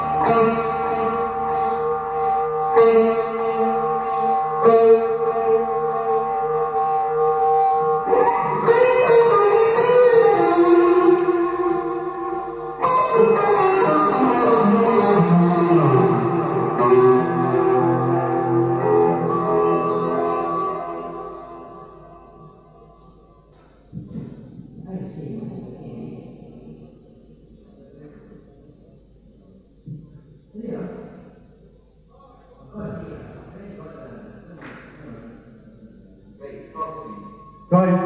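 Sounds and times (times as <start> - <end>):
instrumental music: 0.0 - 24.7.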